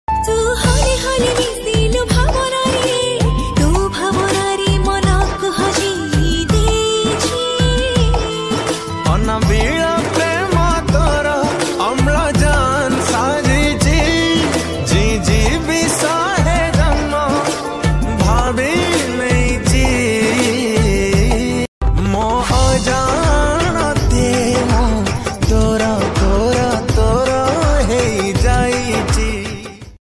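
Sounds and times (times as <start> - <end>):
Odia romantic ringtone melody: 0.1 - 29.1.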